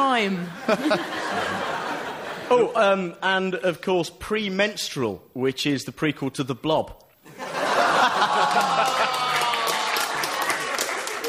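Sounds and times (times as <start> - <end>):
speech: 0.0 - 1.8, 2.5 - 7.0
laughter: 0.4 - 2.8, 7.3 - 11.2
audience clapping: 7.8 - 11.2.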